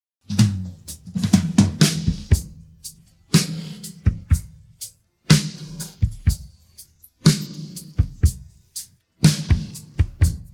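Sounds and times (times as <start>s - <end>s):
drum pattern: 0.2s - 10.5s.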